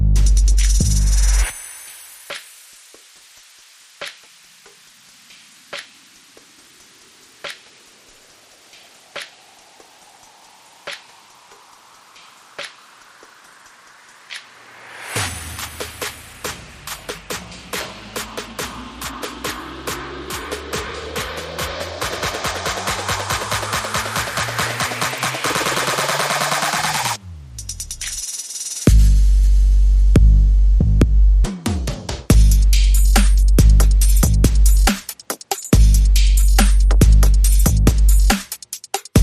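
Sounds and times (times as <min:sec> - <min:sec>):
enchanted trap bass drums: 0:00.0 - 0:01.5, 0:15.2 - 0:31.7, 0:32.3 - 0:39.2.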